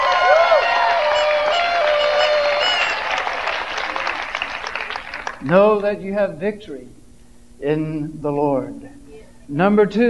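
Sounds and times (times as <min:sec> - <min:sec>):
whoops and cheering voices: 0:00.0 - 0:03.4
crowd applause: 0:00.0 - 0:05.6
speech: 0:05.4 - 0:07.0, 0:07.6 - 0:10.0.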